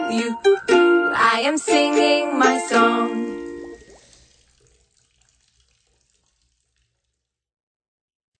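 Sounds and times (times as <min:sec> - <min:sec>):
children's song: 0:00.0 - 0:03.8.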